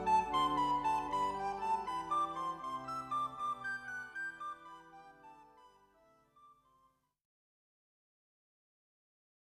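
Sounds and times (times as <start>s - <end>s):
recorder playing: 0.0s - 6.4s.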